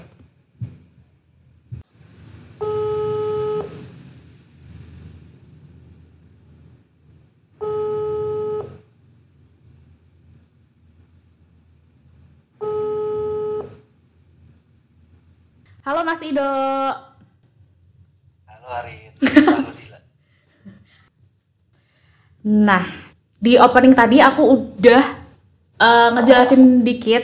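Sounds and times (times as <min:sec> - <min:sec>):
low hum: 0:00.0 - 0:27.2
telephone ringback tone: 0:02.6 - 0:03.8, 0:07.6 - 0:08.8, 0:12.6 - 0:13.8
speech: 0:15.9 - 0:17.1, 0:22.5 - 0:25.2, 0:25.8 - 0:27.2
laughter: 0:19.2 - 0:19.9.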